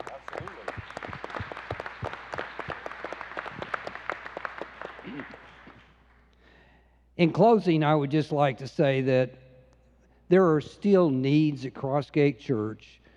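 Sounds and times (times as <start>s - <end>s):
room full of people clapping: 0.0s - 6.4s
speech: 7.2s - 9.4s, 10.3s - 13.0s.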